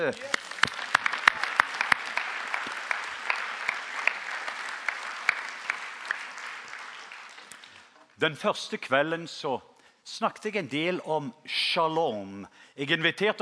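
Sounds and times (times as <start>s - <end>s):
speech: 0.0s - 0.4s, 8.2s - 13.4s
audience applause: 0.0s - 8.0s.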